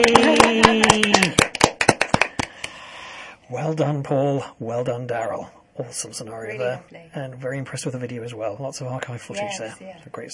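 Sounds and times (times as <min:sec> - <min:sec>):
speech: 0:00.0 - 0:01.1, 0:03.5 - 0:10.3
round of applause: 0:00.0 - 0:02.8.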